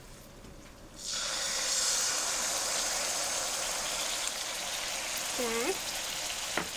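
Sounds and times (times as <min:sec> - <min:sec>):
undiluted coconut cream sizzling in a hot cooking pot: 0:01.0 - 0:06.7.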